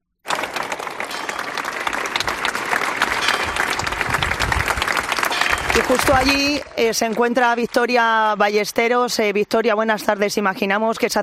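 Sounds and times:
emotional applause ending minute of silence: 0:00.2 - 0:08.5
speech: 0:05.8 - 0:11.2.

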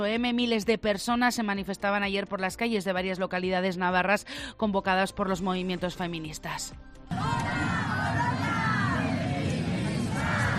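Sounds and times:
speech: 0:00.0 - 0:07.2
protest crowd shouting: 0:07.1 - 0:10.5.

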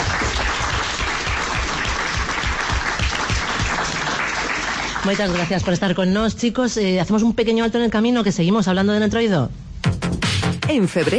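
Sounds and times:
applause for students in a radio studio audience: 0:00.0 - 0:05.8
speech: 0:05.0 - 0:09.6, 0:10.7 - 0:11.1.

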